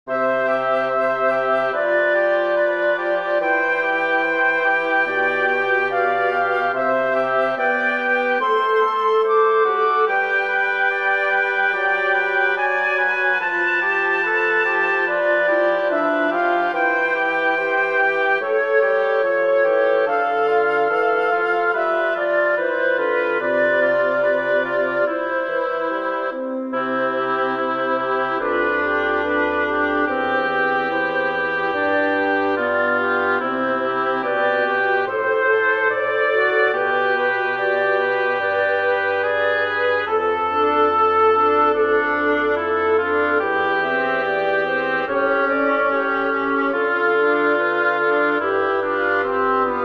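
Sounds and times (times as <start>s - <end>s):
woodwind quartet playing an adagio cantabile: 0.0s - 49.8s.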